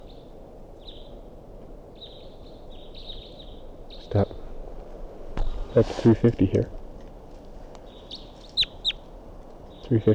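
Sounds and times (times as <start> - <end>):
hiss: 2.1 - 10.1
speech: 4.1 - 4.3, 5.8 - 6.8, 9.9 - 10.1
wild bird whistled calls: 8.1 - 9.0.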